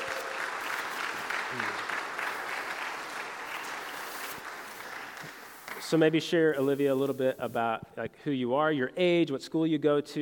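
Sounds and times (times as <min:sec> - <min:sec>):
audience applause welcoming guests: 0:00.0 - 0:05.7
speech: 0:01.5 - 0:01.8, 0:05.9 - 0:10.2.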